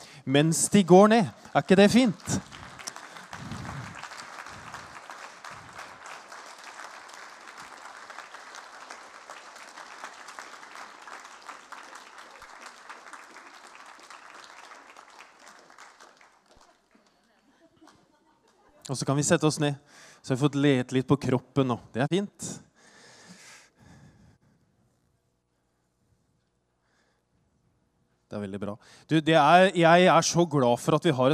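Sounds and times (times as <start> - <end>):
speech: 0.2 - 2.5, 19.0 - 22.6, 28.4 - 31.3
audience applause: 1.3 - 17.2.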